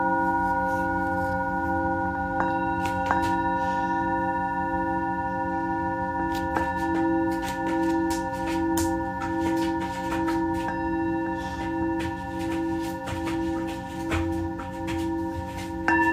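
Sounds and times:
singing bowls ringing, live from Mexico: 0:00.0 - 0:16.1.

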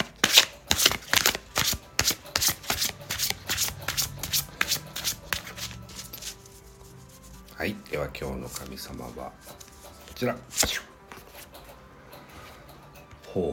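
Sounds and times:
Japanese Yaoyorozu no Kamisama oracle cards being shuffled by hand: 0:00.0 - 0:07.5, 0:09.4 - 0:11.5
speech: 0:07.6 - 0:09.6, 0:10.2 - 0:10.9, 0:13.3 - 0:13.5.

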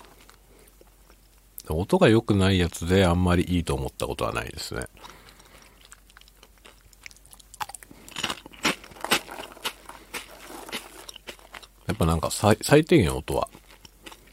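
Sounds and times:
chewing crunchy potato snack sticks: 0:00.0 - 0:01.4, 0:04.8 - 0:12.2, 0:13.2 - 0:14.3
speech: 0:01.7 - 0:05.2, 0:12.0 - 0:13.6.

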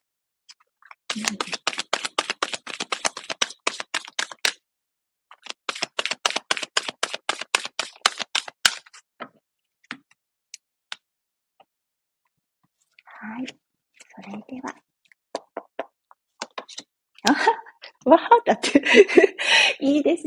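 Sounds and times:
oracle cards from a 44-card deck flicked and drawn: 0:01.1 - 0:04.6, 0:05.3 - 0:09.0, 0:16.4 - 0:16.9
speech: 0:01.2 - 0:01.6, 0:13.4 - 0:13.6, 0:17.3 - 0:20.2.

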